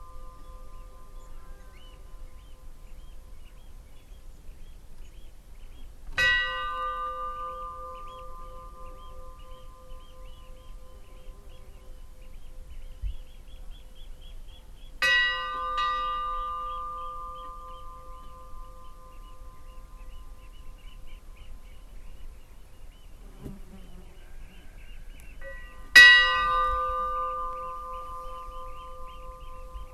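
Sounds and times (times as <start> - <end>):
Stadarfellskirkja funeral bell ringing: 6.2 - 10.1, 15.0 - 19.6, 25.4 - 29.9.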